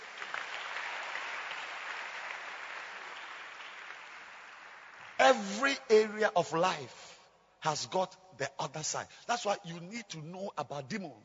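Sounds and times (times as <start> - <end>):
audience clapping: 0.0 - 5.8
speech: 5.2 - 11.2.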